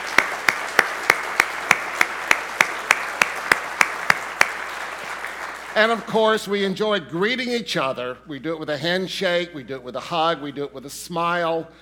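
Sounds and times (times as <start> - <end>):
audience applause for guests: 0.0 - 6.4
speech: 5.8 - 11.8.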